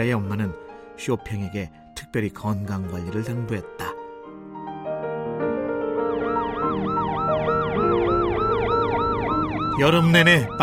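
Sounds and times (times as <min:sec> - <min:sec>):
speech: 0:00.0 - 0:03.8, 0:09.8 - 0:10.6
ambulance siren wailing: 0:05.9 - 0:10.6.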